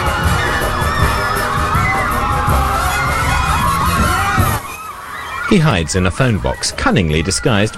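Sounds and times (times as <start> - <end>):
crowd of women chasing, running and shouting: 0.0 - 7.7
speech: 5.5 - 7.7.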